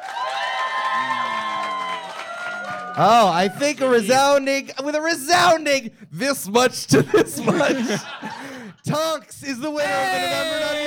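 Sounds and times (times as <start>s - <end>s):
audience cheering: 0.0s - 4.5s, 9.8s - 10.8s
audience clapping: 0.0s - 4.5s
speech: 3.0s - 10.8s
laughter: 6.9s - 9.0s.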